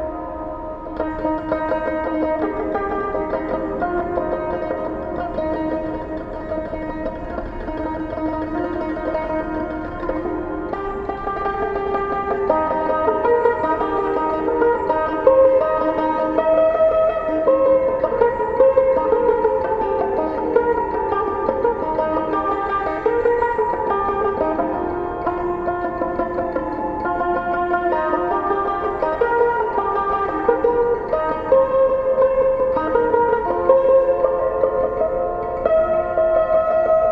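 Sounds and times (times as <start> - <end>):
sitar picking: 0.0 - 37.1.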